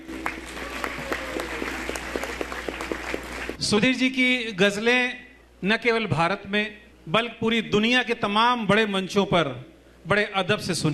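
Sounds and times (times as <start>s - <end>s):
audience applause: 0.0s - 3.6s
speech: 3.6s - 10.9s.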